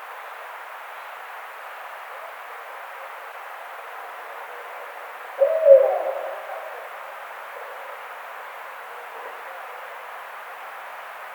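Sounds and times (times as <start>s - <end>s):
barred owl hooting: 5.2s - 8.1s.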